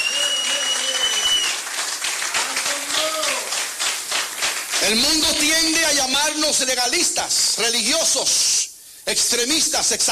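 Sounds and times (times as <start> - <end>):
audience applauding: 0.0 - 5.7
speech: 4.9 - 10.1.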